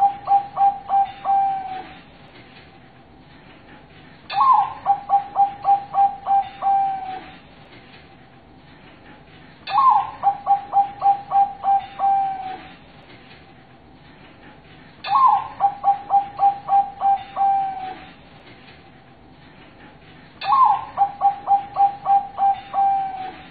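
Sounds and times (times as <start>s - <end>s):
zebra dove cooing master song: 0.0s - 2.0s, 4.3s - 7.4s, 9.7s - 12.8s, 15.1s - 18.1s, 20.4s - 23.4s.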